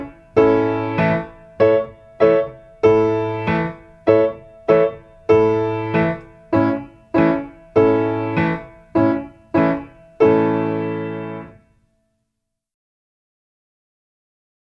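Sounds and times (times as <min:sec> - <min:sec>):
violin improvisation on A and E strings: 0:00.0 - 0:01.3, 0:02.2 - 0:11.6.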